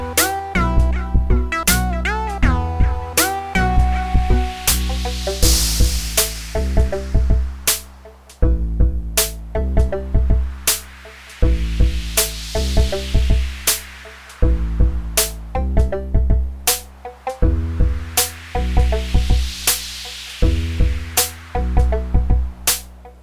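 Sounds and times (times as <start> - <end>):
DS-10 synthesizer music: 0.0 - 23.2.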